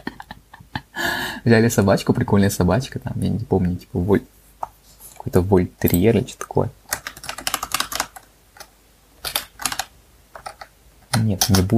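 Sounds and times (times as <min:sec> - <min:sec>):
laughter: 0:00.0 - 0:00.9
speech: 0:01.4 - 0:04.4, 0:05.2 - 0:06.8, 0:11.4 - 0:11.7
rapid typing on a computer keyboard: 0:06.8 - 0:11.7.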